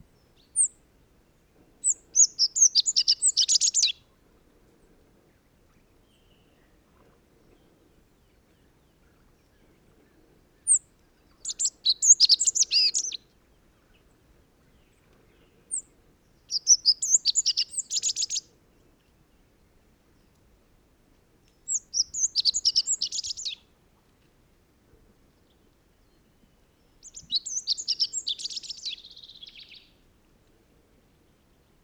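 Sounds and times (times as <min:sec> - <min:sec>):
bird singing atop a Scots pine: 0:01.8 - 0:04.0, 0:10.6 - 0:13.3, 0:16.5 - 0:18.5, 0:21.6 - 0:23.6, 0:26.8 - 0:30.0.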